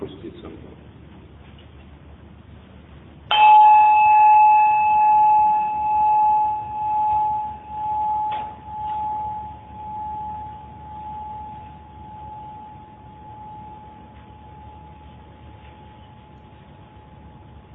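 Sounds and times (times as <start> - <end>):
small bell being struck: 3.3 - 17.3.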